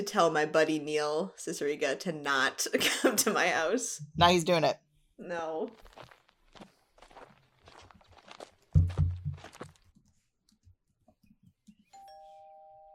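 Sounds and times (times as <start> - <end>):
speech: 0.0 - 6.1
footsteps treading across the floor: 5.9 - 9.8
heavy thud: 8.8 - 9.6
doorbell ringing with a steady sustained electronic chime: 12.0 - 12.9.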